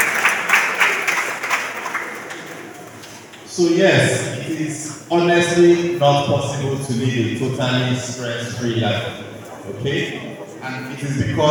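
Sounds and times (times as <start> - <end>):
audience applause: 0.0 - 3.5
speech: 3.6 - 11.4.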